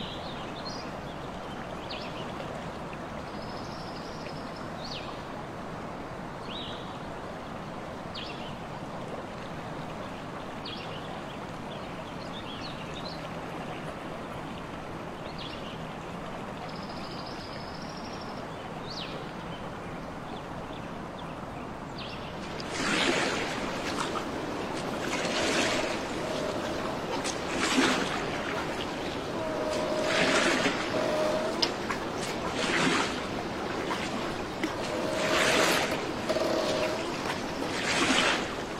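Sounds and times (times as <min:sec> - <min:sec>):
soft steady natural ambient wash: 0:00.0 - 0:38.7
rushing splashing water or surf: 0:22.3 - 0:38.7.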